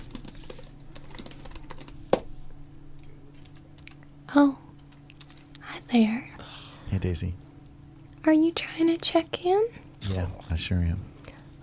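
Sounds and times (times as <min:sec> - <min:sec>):
typing on a computer keyboard for hotel reservation software: 0:00.0 - 0:02.0
speech: 0:04.3 - 0:04.6, 0:06.0 - 0:06.2, 0:07.0 - 0:07.5, 0:08.3 - 0:11.1.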